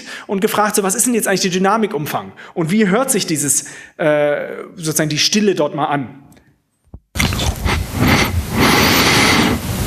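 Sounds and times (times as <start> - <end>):
speech: 0.2 - 6.3
breathing into a headset microphone: 7.2 - 9.7.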